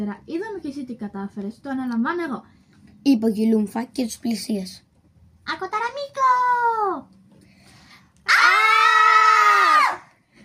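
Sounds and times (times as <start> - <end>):
speech: 0.0 - 4.9, 5.5 - 7.2
human voice imitating aliens shrieking: 8.3 - 10.0.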